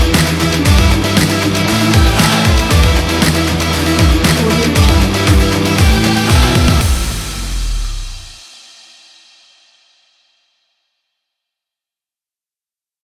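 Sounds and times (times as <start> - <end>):
rock guitar: 0.0 - 8.4
power drums: 0.0 - 9.6.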